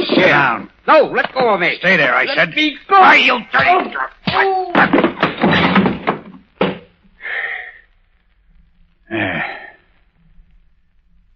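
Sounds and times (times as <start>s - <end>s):
man crashing heavily to the floor: 0.0s - 0.5s, 3.6s - 7.0s
speech: 0.1s - 5.0s, 9.1s - 9.5s
scuffling thumps and bangs: 3.6s - 7.0s
breathy groans: 9.1s - 10.0s.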